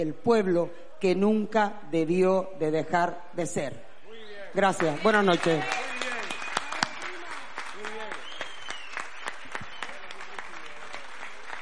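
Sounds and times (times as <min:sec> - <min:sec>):
speech: 0:00.0 - 0:03.9, 0:04.5 - 0:06.1
voices and cheers: 0:04.1 - 0:11.0
audience applauding: 0:04.6 - 0:11.6.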